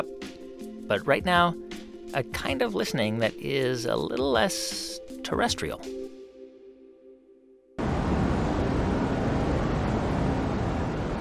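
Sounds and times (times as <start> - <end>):
speech: 0.9 - 6.0
cosmic microwave background radiation left over from the Big Bang: 7.8 - 11.1.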